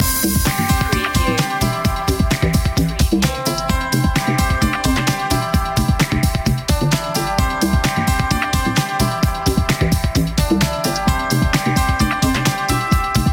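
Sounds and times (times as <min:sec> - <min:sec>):
electronic music loop: 0:00.0 - 0:13.3.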